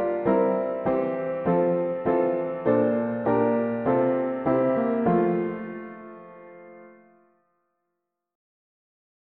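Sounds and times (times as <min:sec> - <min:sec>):
mono piano playing hymns: 0:00.0 - 0:07.2.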